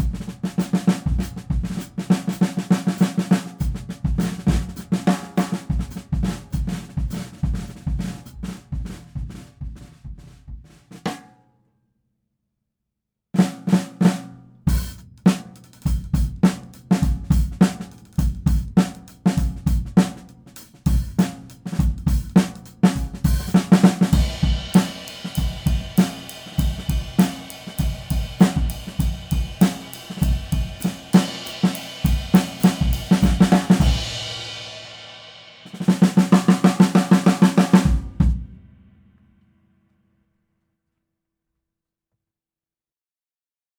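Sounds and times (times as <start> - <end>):
70s Ludwig Super Sensitive snare drum: 0.0 - 11.3, 13.4 - 38.9.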